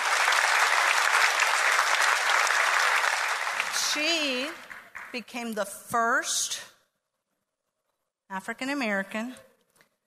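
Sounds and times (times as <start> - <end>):
audience applause greeting a guest introduced on stage: 0.0 - 5.2
speech: 3.9 - 6.6, 8.3 - 9.5.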